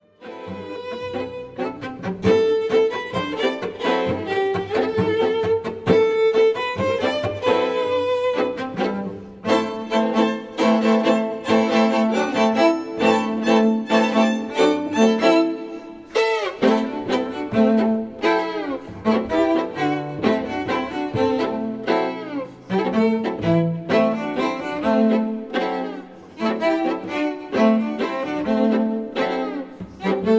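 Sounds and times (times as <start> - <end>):
Latin string ensemble: 0.0 - 30.3.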